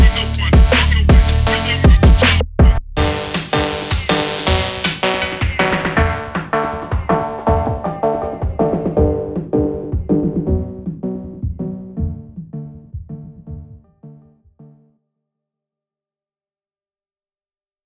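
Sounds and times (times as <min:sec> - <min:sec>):
phonk soundtrack with breakbeat: 0:00.0 - 0:13.8.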